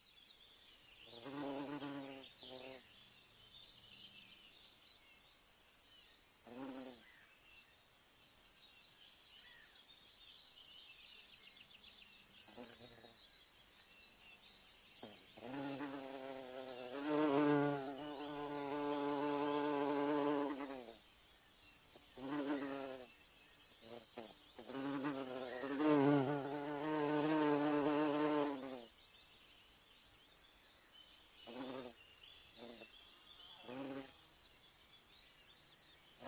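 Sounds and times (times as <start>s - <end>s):
bee buzzing: 1.1s - 2.8s, 15.0s - 21.0s, 22.2s - 23.1s, 23.9s - 28.9s, 33.7s - 34.2s.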